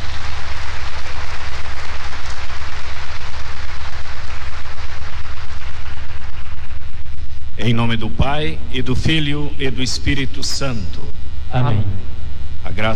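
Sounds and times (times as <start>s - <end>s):
welcoming applause: 0.0s - 7.5s
speech: 7.7s - 12.9s.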